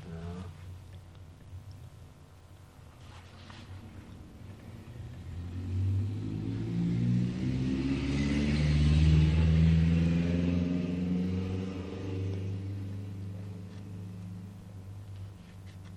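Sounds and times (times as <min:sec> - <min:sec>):
road traffic: 0:03.9 - 0:15.9
cars passing: 0:04.6 - 0:14.7.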